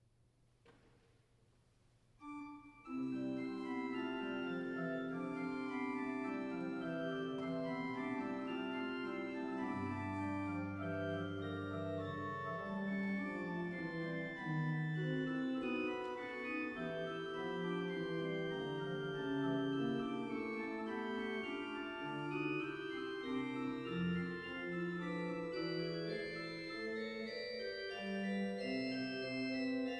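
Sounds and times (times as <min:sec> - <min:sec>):
trio piece in C major: 0:02.2 - 0:29.9.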